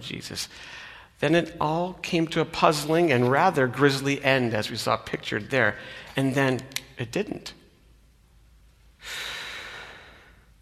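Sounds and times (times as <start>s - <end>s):
speech: 0.0s - 7.6s
man breathing as a video ends: 0.5s - 1.2s, 5.8s - 6.2s, 9.0s - 10.5s.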